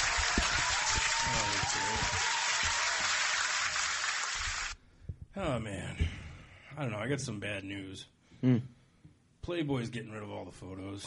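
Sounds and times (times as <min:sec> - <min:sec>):
comedy show audience clapping for a performer: 0:00.0 - 0:04.8
speech: 0:05.4 - 0:06.2, 0:06.8 - 0:08.8, 0:09.5 - 0:11.0.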